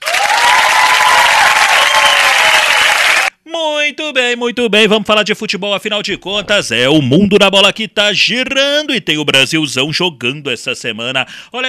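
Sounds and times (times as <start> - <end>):
audience applause: 0.0 - 3.3
speech: 3.9 - 11.6.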